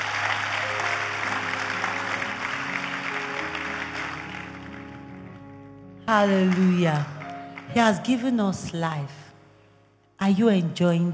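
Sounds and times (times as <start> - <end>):
audience clapping: 0.0 - 5.5, 6.1 - 8.2
speech: 6.1 - 9.2, 10.2 - 11.1.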